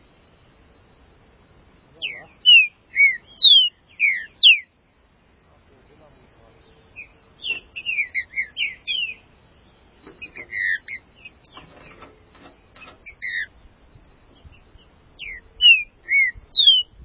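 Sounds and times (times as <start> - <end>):
green-winged saltator singing: 2.0 - 4.7, 7.0 - 9.3, 10.2 - 11.6, 13.0 - 13.5, 15.2 - 17.0.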